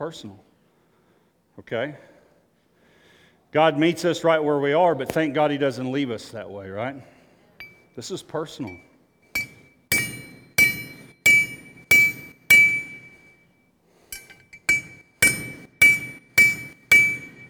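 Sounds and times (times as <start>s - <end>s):
speech: 0.0s - 0.5s, 1.6s - 2.1s, 3.5s - 7.2s, 8.0s - 8.9s
hammer blows on a metal horseshoe: 7.6s - 7.9s, 8.6s - 13.5s, 14.1s - 17.4s.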